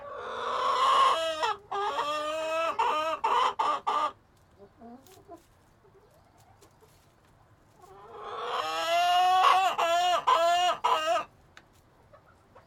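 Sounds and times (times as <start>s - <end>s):
chicken squawking: 0.0s - 4.2s, 7.8s - 11.3s.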